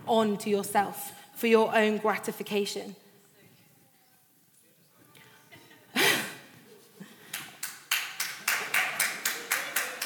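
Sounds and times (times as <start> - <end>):
speech: 0.1 - 3.0
person clapping: 7.3 - 10.0.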